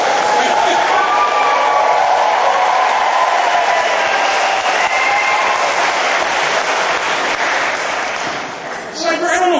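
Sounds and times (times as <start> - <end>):
crowd cheering: 0.0 - 9.5.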